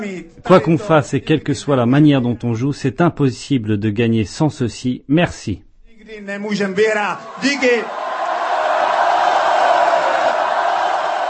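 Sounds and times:
speech: 0.0 - 8.0
hockey crowd celebrating: 6.9 - 11.2.

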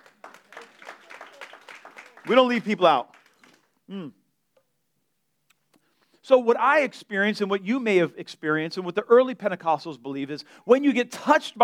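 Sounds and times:
audience clapping together: 0.0 - 3.8
speech: 2.2 - 3.1, 3.9 - 4.2, 6.3 - 11.6.

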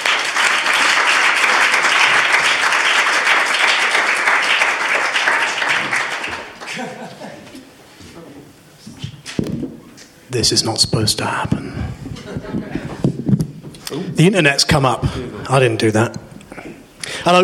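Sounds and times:
audience applauding: 0.0 - 7.2
laughter: 6.6 - 7.8, 11.7 - 13.2
speech: 10.4 - 11.8, 14.0 - 16.3.

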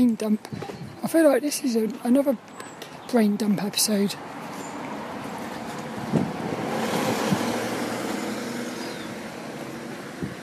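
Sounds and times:
speech: 0.0 - 4.4
noisy road traffic: 0.0 - 10.4.

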